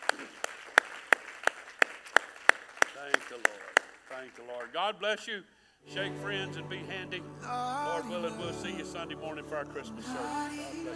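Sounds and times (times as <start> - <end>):
congregation clapping hands in praise at an evening church service: 0.0 - 4.9
speech: 3.1 - 10.9.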